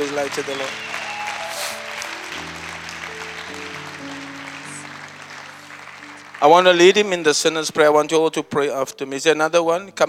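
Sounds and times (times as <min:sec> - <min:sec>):
audience clapping: 0:00.0 - 0:07.9
speech: 0:00.1 - 0:01.0, 0:06.4 - 0:10.0.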